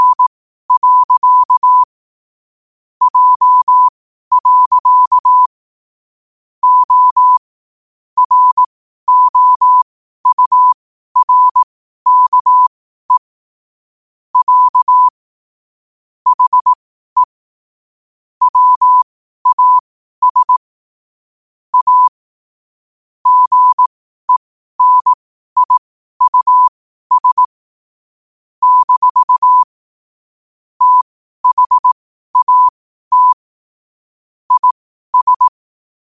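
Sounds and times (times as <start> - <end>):
morse code at 5 wpm: 0.0 - 1.9, 3.1 - 5.5, 6.6 - 7.4, 8.2 - 13.3, 14.4 - 15.2, 16.3 - 17.4, 18.4 - 20.6, 21.7 - 22.2, 23.2 - 27.5, 28.6 - 29.7, 30.8 - 33.4, 34.5 - 35.6.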